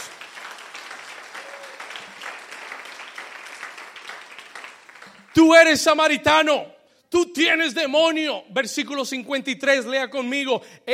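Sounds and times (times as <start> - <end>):
crowd loud applause: 0.0 - 5.6
speech: 5.4 - 10.9.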